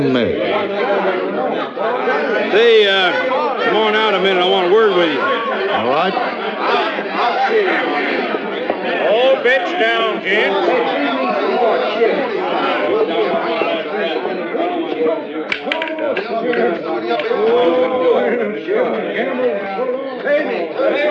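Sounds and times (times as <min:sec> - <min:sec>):
speech: 0:00.0 - 0:08.3, 0:08.9 - 0:14.2, 0:16.4 - 0:21.0
crowd chatter: 0:00.0 - 0:21.0.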